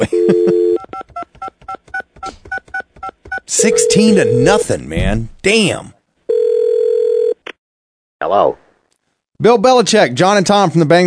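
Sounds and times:
steady dial tone: 0.1 - 0.8, 6.3 - 7.4
speech: 3.6 - 6.0, 8.2 - 8.6, 9.4 - 11.0.

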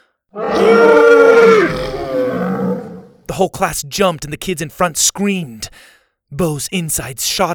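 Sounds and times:
small dinosaur roar: 0.4 - 3.2
speech: 3.4 - 7.5.

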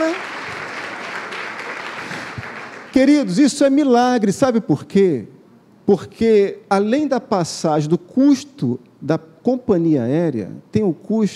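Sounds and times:
audience applause: 0.0 - 3.1
speech: 3.0 - 5.3, 5.9 - 11.3.

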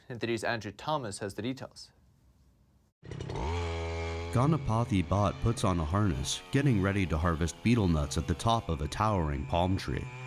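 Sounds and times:
speech: 0.1 - 2.0, 4.4 - 10.2
small motor engine of a motorized tree-climbing scooter: 3.0 - 10.2.

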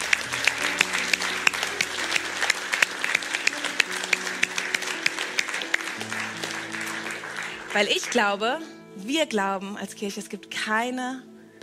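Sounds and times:
audience applause: 0.0 - 8.4
speech: 7.7 - 11.6.

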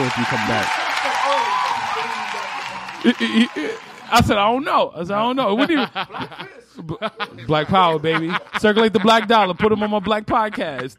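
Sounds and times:
audience applause: 0.0 - 4.5
speech: 0.1 - 2.3, 3.0 - 10.9
laughter: 5.2 - 10.9.

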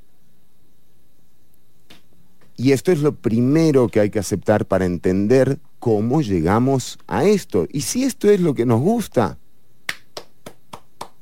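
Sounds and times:
speech: 2.6 - 9.4
hand claps: 9.9 - 11.2.

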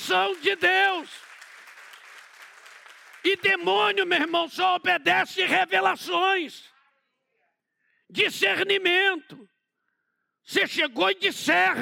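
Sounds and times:
audience applauding: 0.0 - 4.4
speech: 0.1 - 1.2, 3.2 - 6.7, 8.1 - 9.6, 10.5 - 11.8.

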